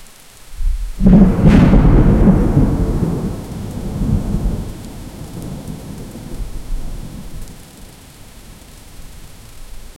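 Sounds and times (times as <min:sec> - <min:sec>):
heavy rain: 0:00.0 - 0:09.9
thunder: 0:00.6 - 0:07.9.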